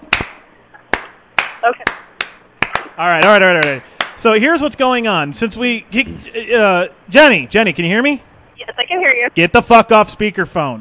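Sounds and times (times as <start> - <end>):
slow clap: 0.1 - 4.2
speech: 1.6 - 2.0, 3.0 - 10.7.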